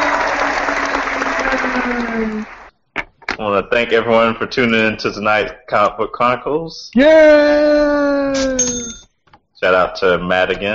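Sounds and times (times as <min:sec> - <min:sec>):
canned applause sound effect: 0:00.0 - 0:02.7
speech: 0:01.9 - 0:02.6, 0:03.4 - 0:09.0, 0:09.6 - 0:10.7.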